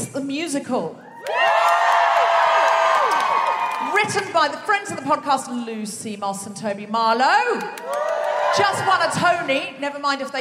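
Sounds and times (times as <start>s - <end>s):
speech: 0.2s - 1.6s, 3.8s - 10.3s
audience cheering with screams, whoops and shouts: 1.1s - 4.2s, 7.8s - 9.4s.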